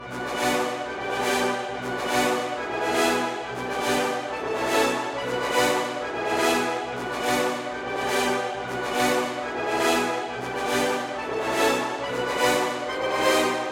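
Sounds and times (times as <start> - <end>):
brass: 0.0 - 13.6.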